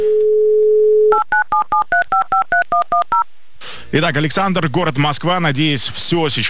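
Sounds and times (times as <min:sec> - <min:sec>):
telephone dialing tones: 0:00.2 - 0:03.2
speech: 0:03.9 - 0:06.4.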